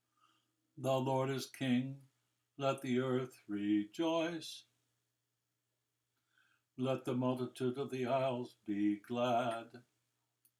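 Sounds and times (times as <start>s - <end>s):
psalm setting: 0.8s - 5.2s, 6.8s - 9.8s.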